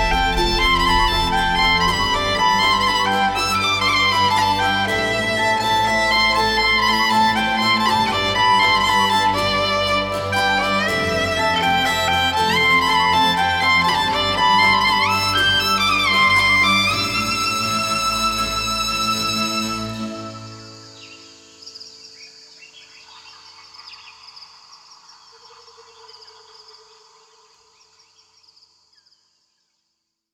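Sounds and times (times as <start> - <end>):
violin: 0.0 - 21.5.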